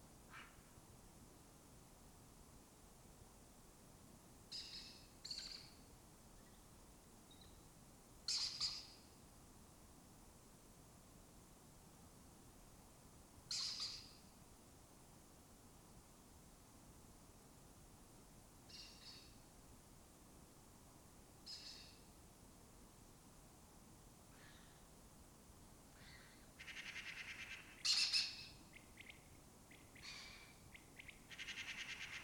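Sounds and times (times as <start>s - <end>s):
steady background hiss: 0.0s - 32.2s
lesser kestrel rasping calls: 26.0s - 28.4s, 29.0s - 32.2s.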